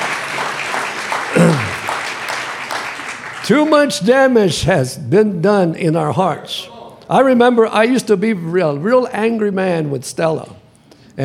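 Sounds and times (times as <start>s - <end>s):
audience applause: 0.0s - 3.7s
person shouting: 1.4s - 1.8s
speech: 3.5s - 10.6s.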